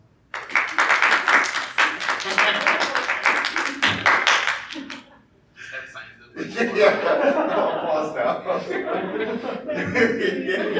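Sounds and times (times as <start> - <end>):
panel audience applause: 0.3 - 5.1
laughter: 1.7 - 10.7.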